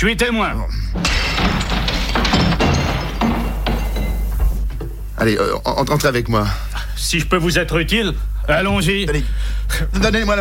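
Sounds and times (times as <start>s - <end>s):
speech: 0.0s - 2.5s, 5.2s - 10.4s
window pane being smashed to get in: 1.0s - 4.8s.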